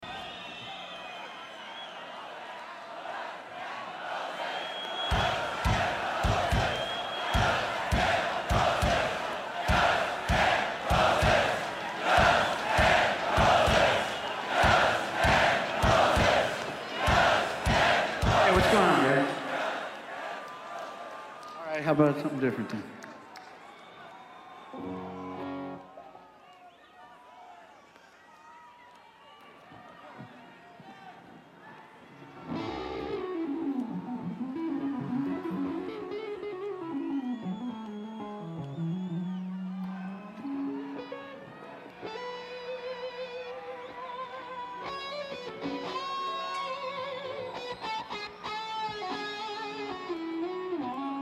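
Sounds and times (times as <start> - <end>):
crowd: 0.0 - 51.1.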